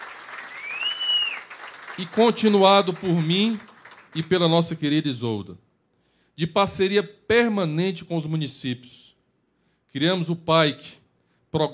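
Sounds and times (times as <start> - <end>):
audience applauding during a speech: 0.0 - 4.3
speech: 2.0 - 5.6, 6.4 - 9.1, 9.9 - 11.7.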